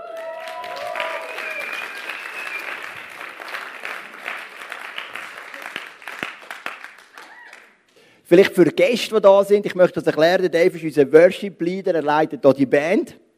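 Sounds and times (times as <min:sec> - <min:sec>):
audience applause: 0:00.0 - 0:07.8
speech: 0:08.3 - 0:13.2.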